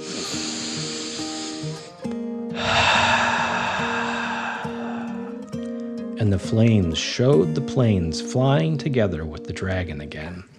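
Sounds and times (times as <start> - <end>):
deep breath in and out: 0.0 - 5.9
speech: 6.2 - 10.5.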